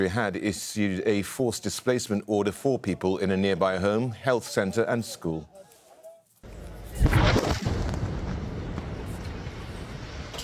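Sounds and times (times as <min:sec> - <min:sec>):
speech: 0:00.0 - 0:05.6
explosion of Israeli strike destroying a house in Al-Nusirat camp Gaza: 0:06.9 - 0:10.4.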